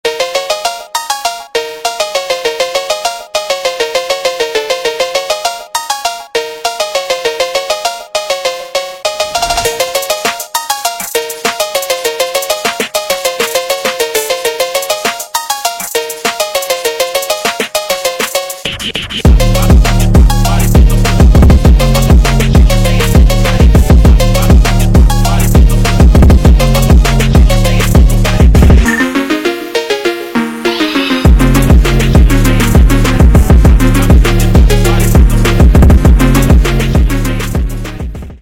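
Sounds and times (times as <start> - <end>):
phonk music: 0.0 - 38.4.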